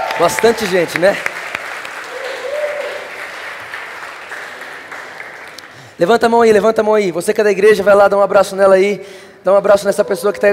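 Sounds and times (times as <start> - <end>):
audience applause: 0.0 - 6.0
speech: 0.2 - 1.3, 6.0 - 10.5.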